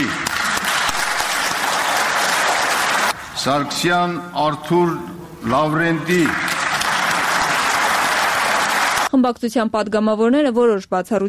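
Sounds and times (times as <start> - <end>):
Armenia Alliance parliament deputies standing and applauding: 0.0 - 3.2, 5.9 - 9.1
speech: 3.4 - 6.5, 9.2 - 11.2.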